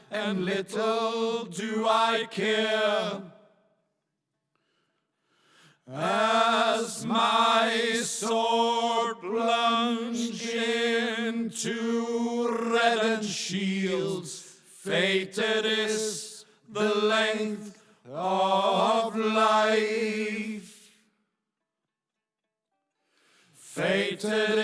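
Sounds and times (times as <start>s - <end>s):
chorus singing: 0.0s - 3.4s, 5.9s - 20.8s, 23.6s - 24.6s.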